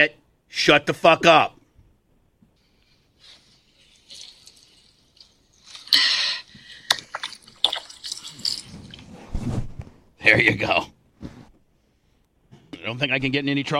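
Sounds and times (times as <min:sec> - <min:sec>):
speech: 0:00.0 - 0:01.6, 0:10.2 - 0:11.0, 0:12.8 - 0:13.7
water running from a garden hose: 0:03.2 - 0:09.1.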